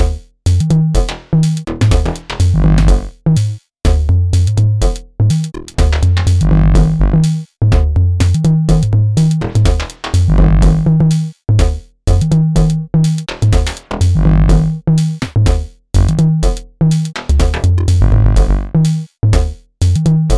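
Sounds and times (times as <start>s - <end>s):
Eurorack drum module jam: 0.0s - 20.3s.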